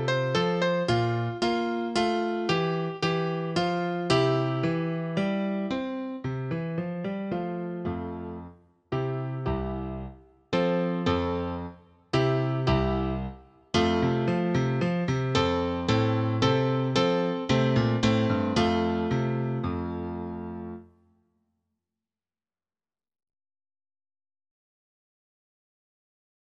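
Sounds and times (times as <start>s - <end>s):
piano accompaniment for French horn at performance tempo: 0.0s - 20.9s.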